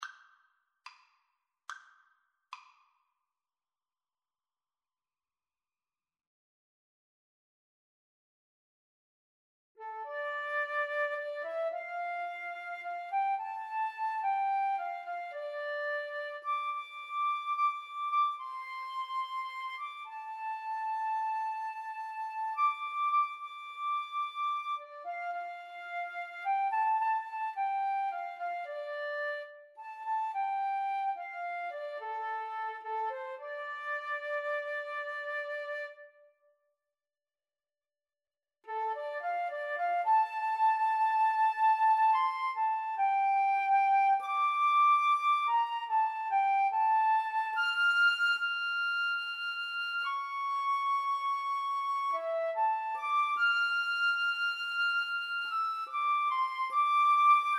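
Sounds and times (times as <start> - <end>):
flute duet: 9.8 - 36.4, 38.7 - 57.5.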